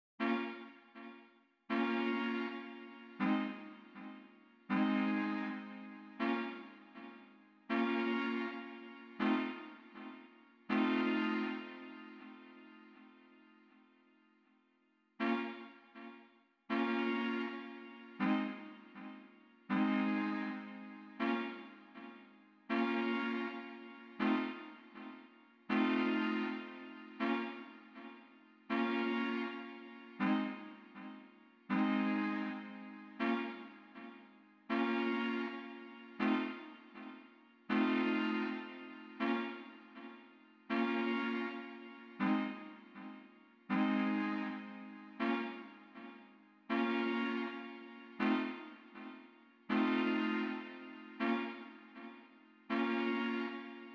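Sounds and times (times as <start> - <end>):
chords: 0.2 - 13.6, 15.2 - 53.9.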